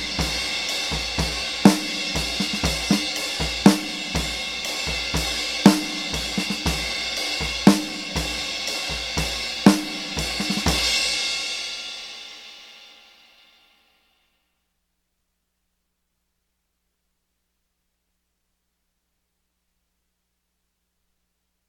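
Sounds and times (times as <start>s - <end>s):
drums: 0.0s - 14.1s.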